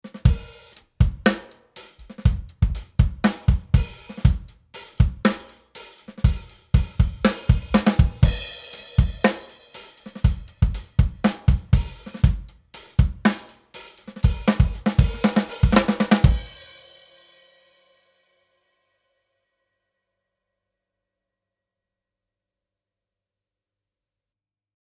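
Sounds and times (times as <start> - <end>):
drums with EQ: 0.0 - 18.0.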